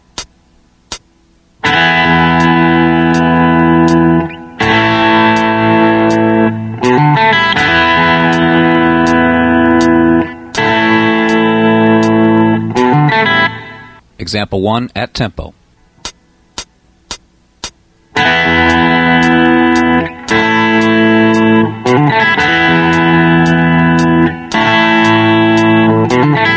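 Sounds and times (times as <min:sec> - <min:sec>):
slow distorted electric guitar lead: 0:01.6 - 0:14.0, 0:18.1 - 0:26.5
speech: 0:14.3 - 0:15.6.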